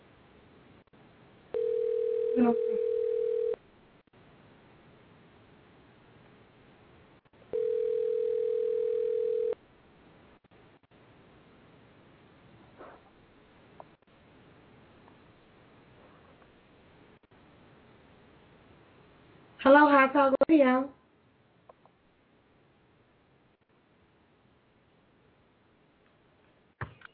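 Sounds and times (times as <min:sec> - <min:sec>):
outgoing phone call ringback tone: 0:01.5 - 0:03.6, 0:07.5 - 0:09.6
speech: 0:02.4 - 0:02.9, 0:19.7 - 0:21.0.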